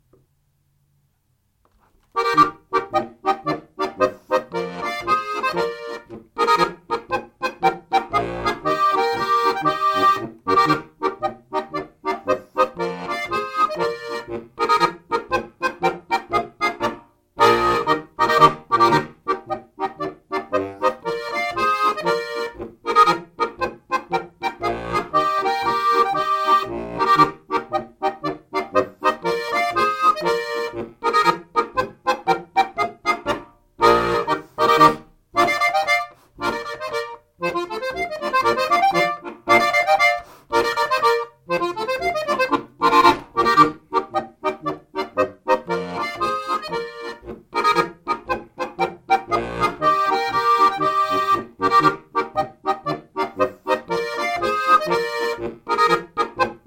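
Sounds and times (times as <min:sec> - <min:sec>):
polka music: 0:01.7 - 0:56.6.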